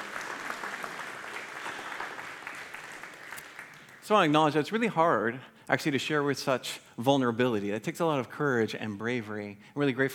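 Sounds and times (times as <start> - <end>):
audience applause: 0.0 - 4.3
speech: 4.1 - 10.1.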